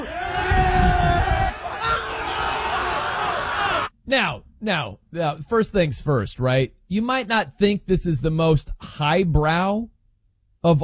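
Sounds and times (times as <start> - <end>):
basketball fans cheering and yelling: 0.0 - 3.9
speech: 4.1 - 9.9, 10.6 - 10.8.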